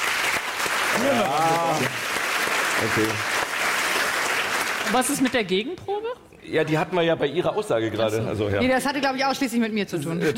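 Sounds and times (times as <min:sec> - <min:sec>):
studio audience clapping in a show-of-hands vote: 0:00.0 - 0:05.7
speech: 0:00.9 - 0:02.1, 0:02.8 - 0:03.4, 0:04.9 - 0:10.3.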